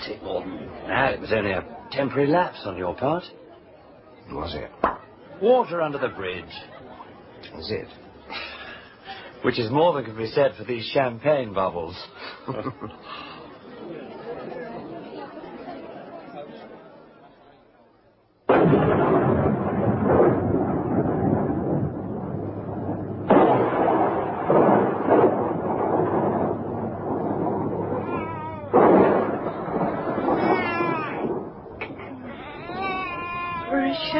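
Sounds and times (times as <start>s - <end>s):
speech: 0.1s - 3.4s, 4.3s - 6.7s, 7.5s - 8.5s, 9.4s - 13.3s
laughter: 5.8s - 7.4s, 12.2s - 16.9s
thunder during a storm: 18.5s - 34.0s.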